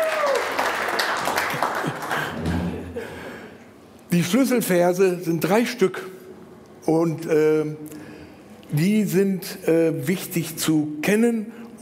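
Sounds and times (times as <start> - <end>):
audience applause: 0.0 - 3.0
speech: 4.1 - 6.2, 6.9 - 8.0, 8.7 - 11.6.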